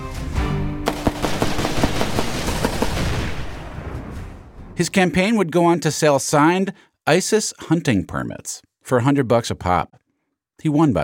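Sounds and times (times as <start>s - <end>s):
machine-gun fire from a candidate shooting in a field in a campaign ad: 0.8s - 3.9s
speech: 4.8s - 10.0s, 10.6s - 11.0s.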